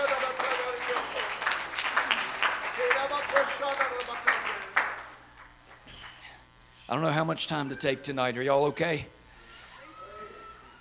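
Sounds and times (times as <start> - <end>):
audience clapping hands: 0.0 - 6.2
speech: 6.9 - 9.2.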